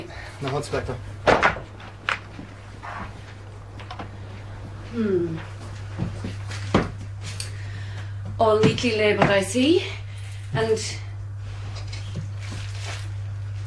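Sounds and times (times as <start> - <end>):
steady low hum: 0.0 - 13.6
speech: 0.4 - 1.4, 4.9 - 5.5, 8.4 - 11.0
store room door creaking as opened: 2.7 - 4.2.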